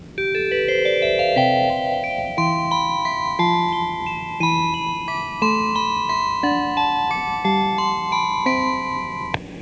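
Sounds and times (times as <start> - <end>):
chime: 0.2 - 9.4.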